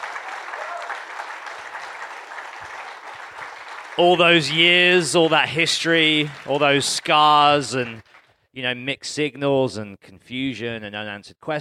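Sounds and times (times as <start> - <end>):
crowd applause: 0.0 - 8.3
speech: 4.0 - 11.5.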